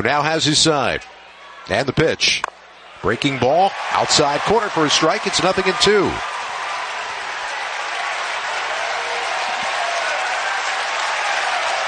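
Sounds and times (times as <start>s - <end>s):
speech: 0.0s - 6.3s
Oklahoma fans cheering and applauding at a championship-series baseball game: 2.9s - 11.8s.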